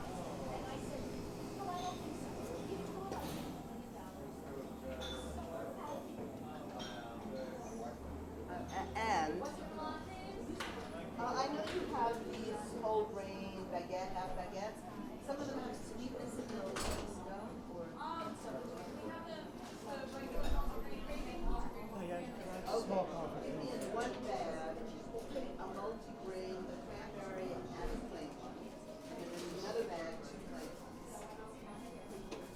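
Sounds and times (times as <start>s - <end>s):
coffee shop ambience: 0.0s - 32.5s.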